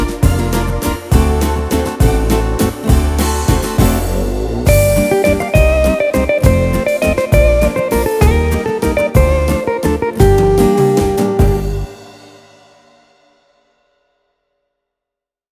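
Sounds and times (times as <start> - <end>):
guitar waltz: 0.0 - 12.0.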